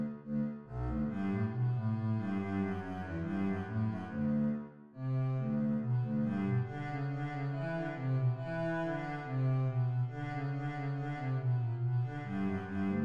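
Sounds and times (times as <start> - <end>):
string bass: 0.0 - 13.0.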